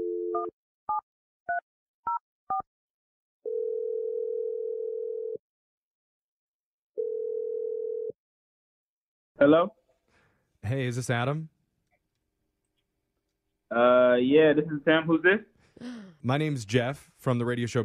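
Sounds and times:
long steady low telephone line tones: 3.5 - 5.4, 7.0 - 8.2
speech: 9.4 - 9.8, 10.6 - 11.6, 13.7 - 17.8.

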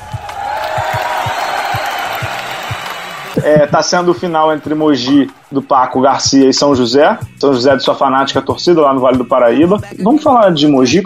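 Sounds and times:
applause sound effect: 0.0 - 5.5
speech: 3.4 - 11.0.

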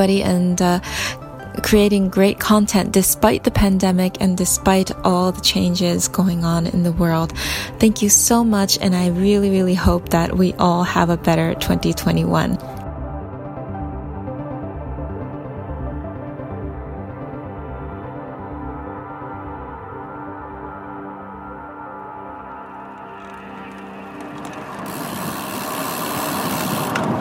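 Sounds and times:
speech: 0.0 - 12.7
motorbike engine running: 21.1 - 27.2.

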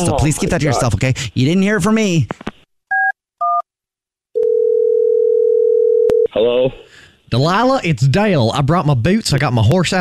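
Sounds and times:
speech: 0.0 - 2.4, 6.3 - 9.9
telephone dial tone: 4.4 - 6.3.

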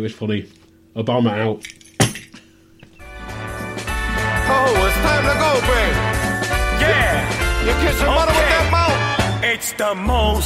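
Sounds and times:
speech: 0.0 - 1.8, 4.6 - 6.1, 6.9 - 8.9, 9.5 - 10.4
keys dropped as a mic drop with sharp metallic clinks: 1.6 - 3.0
music with sustained tones and a steady beat: 3.0 - 10.4.

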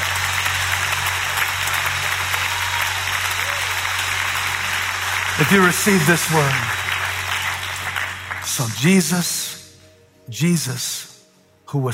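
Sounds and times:
audience clapping hands: 0.0 - 9.3
speech: 5.4 - 6.8, 8.5 - 9.4, 10.3 - 11.1, 11.7 - 11.9.

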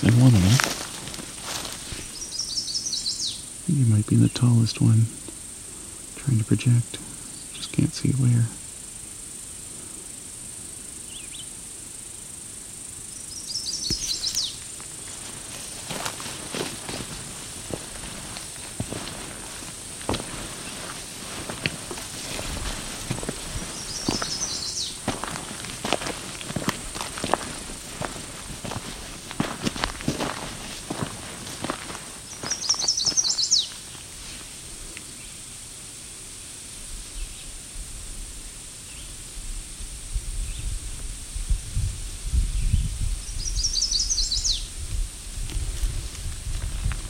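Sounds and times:
crunching footsteps: 0.0 - 2.3, 13.8 - 35.0, 45.2 - 47.0
steady hiss: 0.0 - 47.0
speech: 3.7 - 5.2, 6.3 - 7.0, 7.8 - 8.6
loud bird calling from a tree: 23.6 - 25.4, 32.3 - 33.8.

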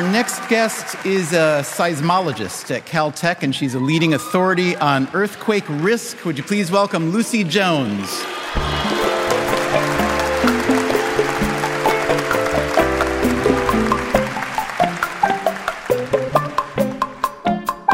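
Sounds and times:
speech: 0.0 - 9.0
audience applause: 0.0 - 17.3
upbeat music: 8.3 - 17.9.

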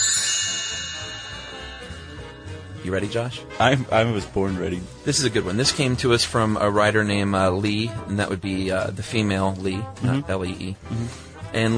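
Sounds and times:
bright chime: 0.0 - 4.3
speech: 2.8 - 11.7.

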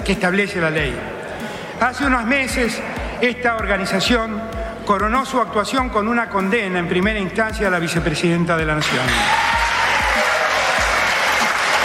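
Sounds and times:
speech: 0.1 - 1.2, 1.8 - 9.6
audience applause: 8.8 - 11.8.

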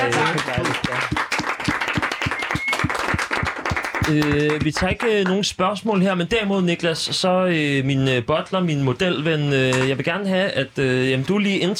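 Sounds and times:
audience clapping: 0.0 - 5.5
speech: 4.1 - 11.7.

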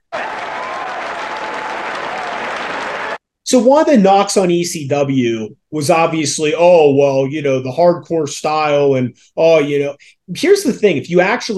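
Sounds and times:
wrestling crowd cheering and applauding: 0.0 - 3.2
speech: 3.5 - 11.5.

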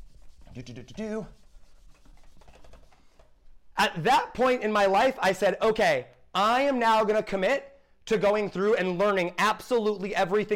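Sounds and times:
eraser wiping writing off a board: 0.0 - 3.0
speech: 0.6 - 1.4, 3.8 - 10.5.

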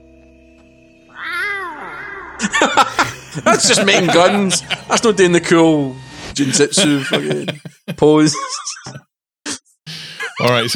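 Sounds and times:
video game character's cat-like yowl: 1.1 - 2.8
laughter: 2.3 - 5.7, 6.4 - 9.1, 9.9 - 10.7
speech: 2.4 - 9.0, 10.4 - 10.7.

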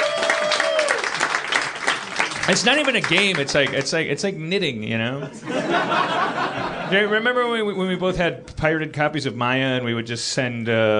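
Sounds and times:
audience applause: 0.0 - 4.0
speech: 2.5 - 10.9
laughter: 5.2 - 7.6.

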